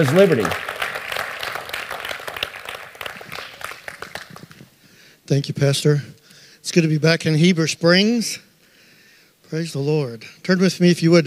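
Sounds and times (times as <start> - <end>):
speech: 0.0 - 0.7, 5.3 - 8.4, 9.5 - 11.2
church congregation clapping to welcome a speaker: 0.0 - 4.7.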